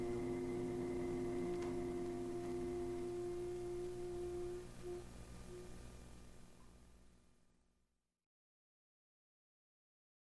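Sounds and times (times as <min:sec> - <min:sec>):
improvised music: 0:00.0 - 0:05.8.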